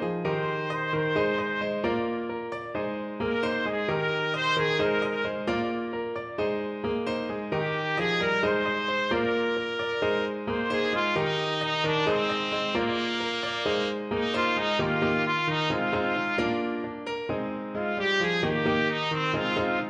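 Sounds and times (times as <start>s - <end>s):
trumpet: 0.2s - 6.4s, 7.2s - 17.2s, 17.8s - 19.8s.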